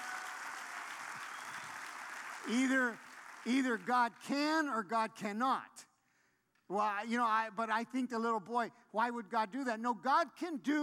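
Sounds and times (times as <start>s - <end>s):
very soft audience clapping: 0.0s - 4.2s
speech: 2.4s - 5.9s, 6.7s - 10.8s.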